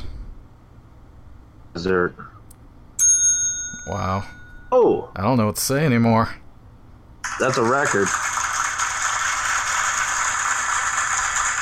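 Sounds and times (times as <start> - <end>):
speech: 1.8 - 2.4, 3.9 - 6.4, 7.4 - 8.4
heavy applause: 7.2 - 11.6.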